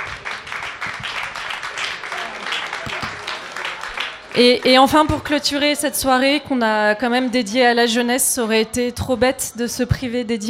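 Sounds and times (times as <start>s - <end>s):
audience applause: 0.0s - 5.4s
speech: 4.4s - 10.4s.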